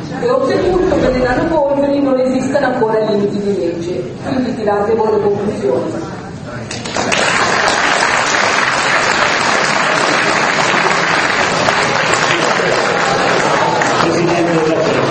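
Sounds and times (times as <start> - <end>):
speech: 0.1 - 7.2
audience applause: 6.8 - 15.0.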